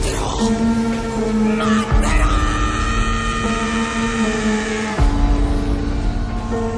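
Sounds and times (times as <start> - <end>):
anime characters painful screams: 0.1 - 6.7.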